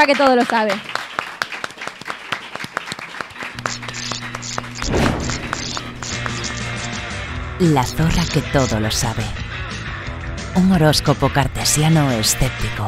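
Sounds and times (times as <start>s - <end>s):
speech: 0.0s - 0.9s, 7.6s - 9.4s, 10.6s - 12.8s
audience applause: 0.0s - 6.8s.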